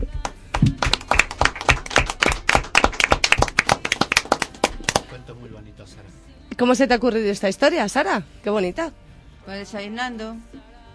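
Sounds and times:
group of people clapping: 0:00.2 - 0:05.3
speech: 0:05.7 - 0:10.6.

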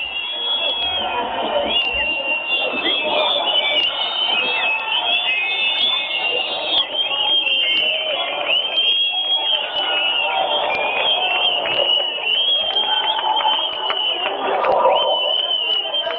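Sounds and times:
shrill whistle-like tones: 0:00.0 - 0:16.1
street demonstration crowd chanting and shouting outside: 0:10.4 - 0:16.1.

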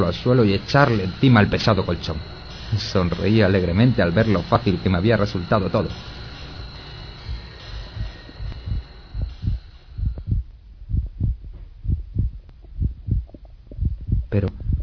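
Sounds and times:
speech: 0:00.0 - 0:06.2
faint hum: 0:00.0 - 0:14.8
muffled heartbeat beneath a heavy mattress: 0:07.2 - 0:14.8.

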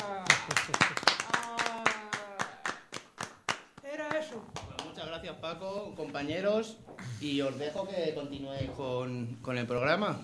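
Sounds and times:
applause: 0:00.0 - 0:05.0
speech: 0:05.2 - 0:10.2.

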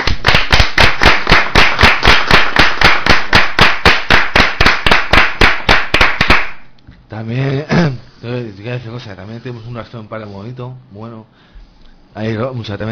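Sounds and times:
loud rhythmic clapping: 0:00.0 - 0:06.7
speech: 0:07.2 - 0:07.4, 0:08.5 - 0:12.8.

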